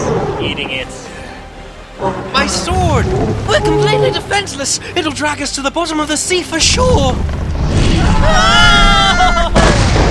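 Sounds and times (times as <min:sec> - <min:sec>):
speech: 0:00.4 - 0:01.1, 0:02.0 - 0:09.6
fireball explosion: 0:06.7 - 0:10.0.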